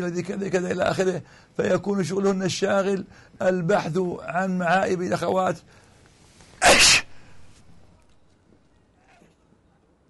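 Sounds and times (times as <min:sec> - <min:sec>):
speech: 0:00.0 - 0:05.8, 0:06.6 - 0:07.0
faint breathy noise: 0:01.2 - 0:01.6, 0:03.1 - 0:03.4, 0:05.6 - 0:07.8
loud sneeze from a sheikh: 0:06.6 - 0:07.2.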